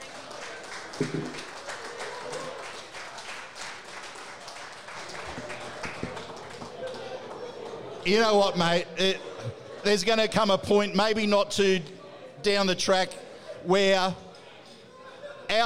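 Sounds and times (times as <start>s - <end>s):
round of applause: 0.0s - 8.6s
speech: 1.0s - 1.5s, 8.0s - 14.2s.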